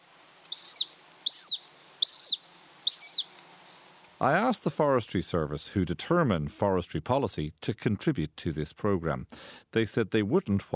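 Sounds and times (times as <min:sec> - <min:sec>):
hen harrier calls: 0:00.5 - 0:03.3
speech: 0:04.2 - 0:10.7.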